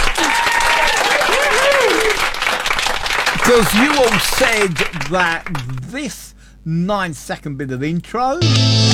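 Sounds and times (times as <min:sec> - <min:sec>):
crowd clapping: 0:00.0 - 0:05.9
speech: 0:03.5 - 0:08.9.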